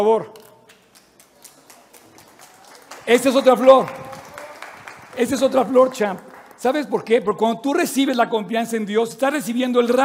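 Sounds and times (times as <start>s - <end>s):
speech: 0.0s - 0.4s, 3.1s - 4.0s, 5.2s - 10.0s
small group applauding: 0.7s - 7.1s.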